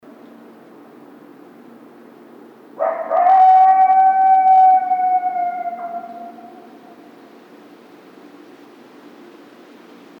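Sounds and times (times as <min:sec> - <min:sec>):
coyote howling: 0:02.8 - 0:07.2.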